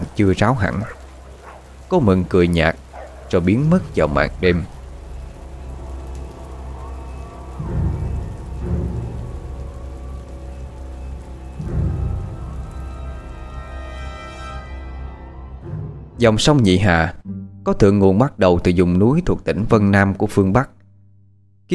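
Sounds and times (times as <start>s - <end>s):
rain falling at night: 0.0s - 15.2s
speech: 0.2s - 1.0s, 1.9s - 4.8s, 16.2s - 20.8s.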